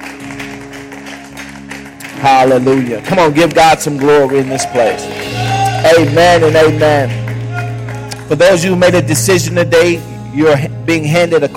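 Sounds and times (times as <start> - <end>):
audience clapping hands: 0.0 - 9.4
speech: 2.2 - 7.2, 8.3 - 11.5.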